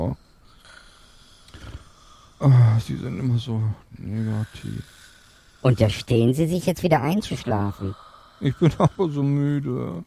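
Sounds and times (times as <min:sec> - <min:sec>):
hiss: 0:00.0 - 0:10.0
person snoring: 0:00.6 - 0:02.8, 0:04.1 - 0:05.7, 0:07.4 - 0:09.5
speech: 0:02.4 - 0:05.0, 0:05.6 - 0:10.0.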